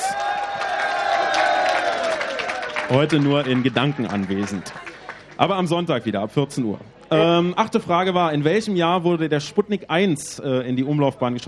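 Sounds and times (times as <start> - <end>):
crowd whoops: 0.0 - 3.4
studio applause: 0.0 - 6.1
speech: 2.9 - 11.4.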